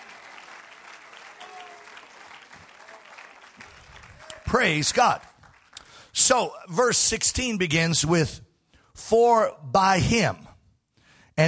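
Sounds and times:
audience clapping hands: 0.0 - 6.1
speech: 4.5 - 5.3, 6.2 - 8.4, 9.0 - 10.4.

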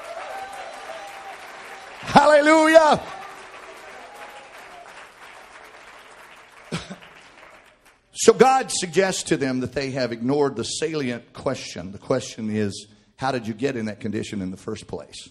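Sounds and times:
audience clapping hands: 0.0 - 8.5
speech: 2.0 - 3.2, 8.2 - 15.2.

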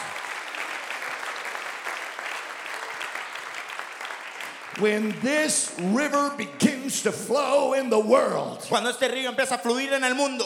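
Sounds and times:
audience clapping: 0.0 - 6.9
speech: 4.8 - 10.4.

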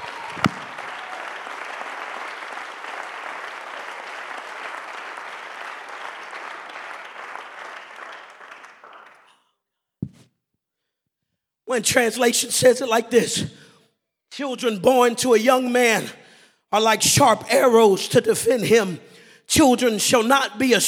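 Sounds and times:
large crowd clapping hands: 0.0 - 9.4
sharp knock: 10.0 - 10.2
speech: 11.7 - 13.6, 14.4 - 20.8.

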